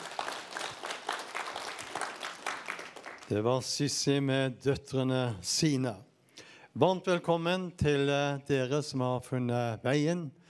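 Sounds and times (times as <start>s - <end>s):
audience applause: 0.0s - 3.3s
speech: 3.3s - 6.1s, 6.8s - 10.4s.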